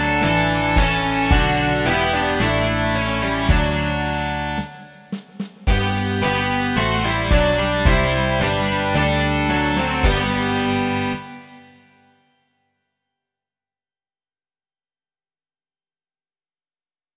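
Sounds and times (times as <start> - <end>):
rock music: 0.0 - 12.0.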